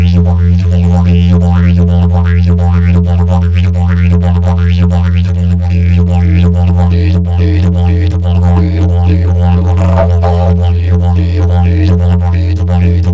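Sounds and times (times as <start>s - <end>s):
didgeridoos playing: 0.0s - 13.1s.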